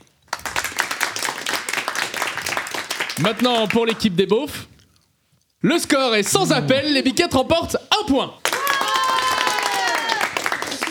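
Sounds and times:
audience applause: 0:00.3 - 0:03.8, 0:08.4 - 0:10.8
speech: 0:03.2 - 0:04.7, 0:05.6 - 0:08.4.

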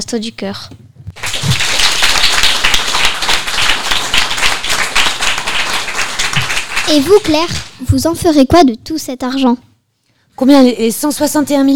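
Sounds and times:
speech: 0:00.0 - 0:00.9, 0:06.9 - 0:09.7, 0:10.4 - 0:11.7
audience applause: 0:01.2 - 0:07.7.

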